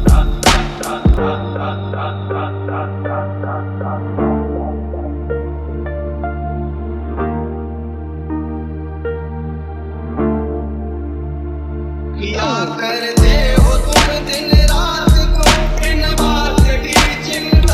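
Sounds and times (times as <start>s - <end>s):
electronic bass remix: 0.0s - 7.2s, 12.0s - 17.7s.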